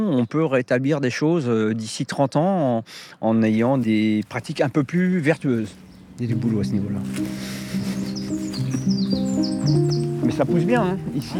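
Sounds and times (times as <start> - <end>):
speech: 0.0 - 8.0, 9.4 - 11.3
birds calling from newly planted hedgerows with oak: 3.4 - 11.3.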